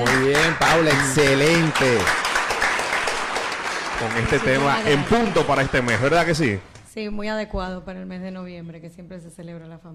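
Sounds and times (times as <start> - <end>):
speech: 0.0 - 2.2, 4.0 - 9.9
audience applause: 0.0 - 6.6.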